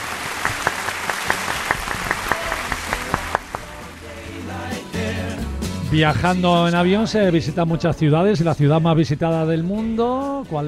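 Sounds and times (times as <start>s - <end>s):
applause: 0.0s - 3.7s
speech: 5.9s - 10.6s.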